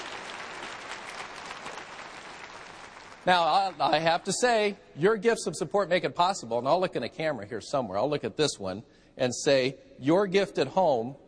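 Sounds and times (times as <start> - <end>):
church congregation applause during a televised service: 0.0 - 4.7
speech: 3.2 - 11.2.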